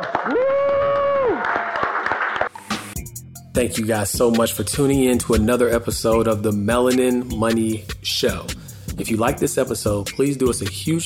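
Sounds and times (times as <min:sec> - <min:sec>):
whooping: 0:00.0 - 0:02.2
audience applause: 0:00.0 - 0:02.6
speech: 0:03.6 - 0:11.0.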